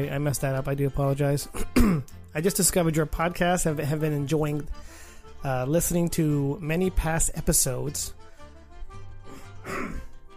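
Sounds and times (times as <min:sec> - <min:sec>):
speech: 0:00.0 - 0:08.2
man clearing throat: 0:01.6 - 0:02.1, 0:09.6 - 0:10.1.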